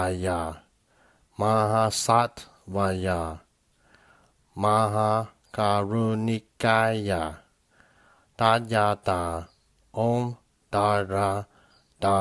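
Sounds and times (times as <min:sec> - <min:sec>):
Tibetan mantra chanting: 0:00.0 - 0:00.7, 0:01.3 - 0:03.5, 0:04.5 - 0:07.5, 0:08.3 - 0:12.1.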